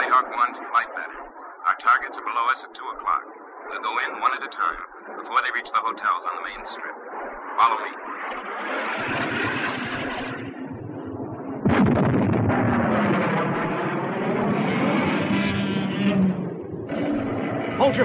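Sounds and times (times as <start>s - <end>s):
fighter jets roaring as they fire rockets at giant monsters: 0.0s - 18.0s
speech: 2.1s - 7.0s, 7.6s - 9.8s, 17.9s - 18.0s
explosion blast: 8.4s - 18.0s.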